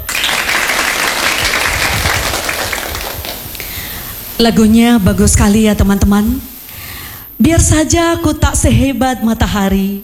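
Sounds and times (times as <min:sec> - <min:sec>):
audience applause: 0:00.0 - 0:03.7
speech: 0:04.4 - 0:06.5, 0:07.4 - 0:10.0.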